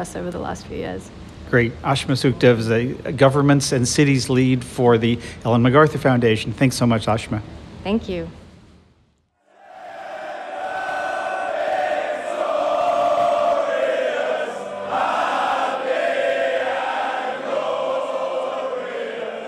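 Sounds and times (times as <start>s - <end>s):
speech: 0.0s - 8.4s
pub crowd watching World Cup match: 9.5s - 19.4s.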